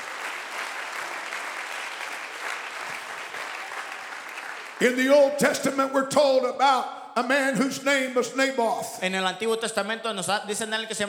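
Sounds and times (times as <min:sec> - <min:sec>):
audience clapping hands: 0:00.0 - 0:05.8
speech: 0:04.8 - 0:11.0.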